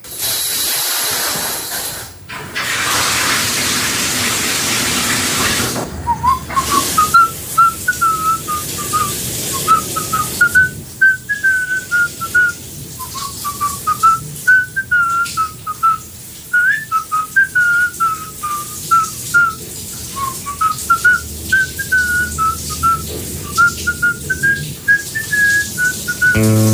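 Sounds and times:
shower water hissing: 0.0 - 26.7
person whistling a brisk march tune in the shower: 6.0 - 26.7.

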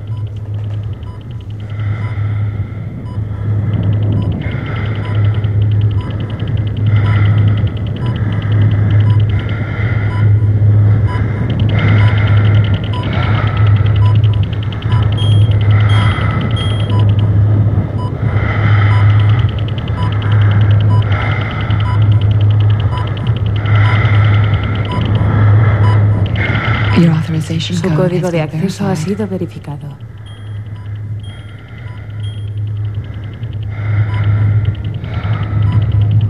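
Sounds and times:
retinal scanner low hum, synthetic sound effect: 0.0 - 36.2
retinal scanner pulsed electronic tone: 3.0 - 34.8
high beep: 14.9 - 17.2, 30.3 - 32.6
speech: 27.6 - 30.1.

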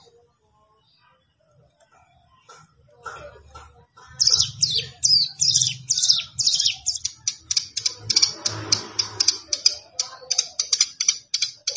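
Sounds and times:
plain prinia singing: 4.1 - 11.7.

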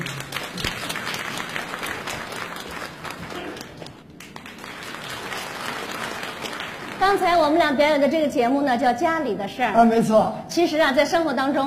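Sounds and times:
audience applause: 0.0 - 7.2
speech: 7.0 - 11.6.

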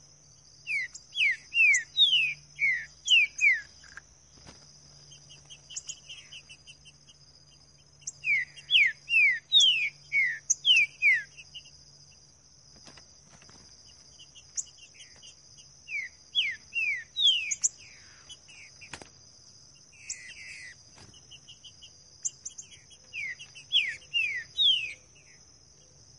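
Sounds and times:
green-winged saltator singing in the bush: 0.6 - 4.0, 5.1 - 7.2, 7.9 - 11.8, 14.2 - 19.0, 20.0 - 25.4.

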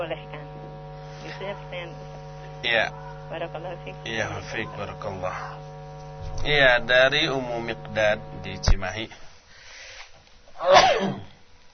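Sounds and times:
speech: 0.0 - 0.4, 1.4 - 5.6, 6.3 - 9.3, 10.6 - 11.2
sneeze: 10.6 - 11.4.

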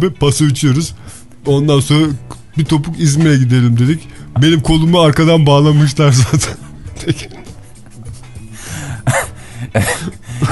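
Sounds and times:
speech: 0.0 - 7.4, 9.0 - 10.5
harsh raspy coughs: 8.8 - 10.5
throat clearing: 9.0 - 10.5.

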